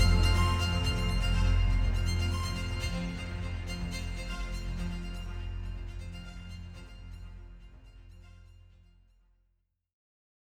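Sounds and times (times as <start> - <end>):
instrumental music: 0.0 - 7.6.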